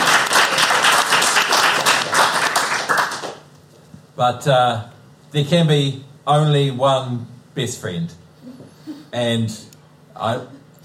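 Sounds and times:
audience applause: 0.0 - 3.4
speech: 4.2 - 10.8.

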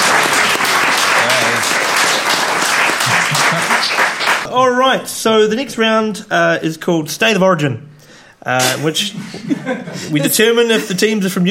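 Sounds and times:
crowd applause: 0.0 - 4.5
laughter: 2.7 - 4.4, 8.6 - 11.2
speech: 4.5 - 11.5.

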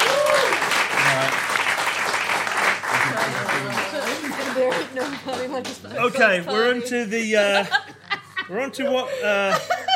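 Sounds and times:
audience applause: 0.0 - 5.8
speech: 5.1 - 7.8, 8.5 - 9.7
laughter: 6.0 - 9.9.

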